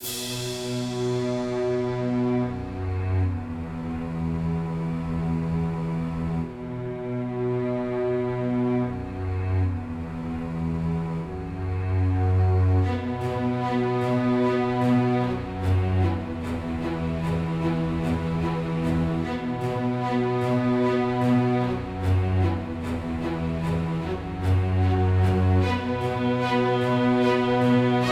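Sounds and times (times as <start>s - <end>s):
music: 0.0s - 28.1s.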